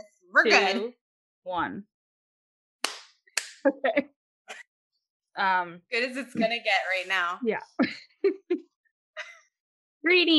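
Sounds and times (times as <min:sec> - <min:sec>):
speech: 0:00.4 - 0:01.9, 0:03.6 - 0:04.2, 0:05.4 - 0:08.7, 0:10.0 - 0:10.3
hand claps for recording sync: 0:02.8 - 0:03.7.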